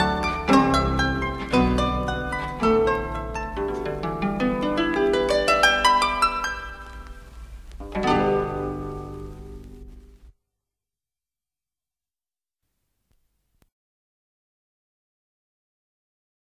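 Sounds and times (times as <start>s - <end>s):
harps playing in stereo: 0.0s - 9.6s.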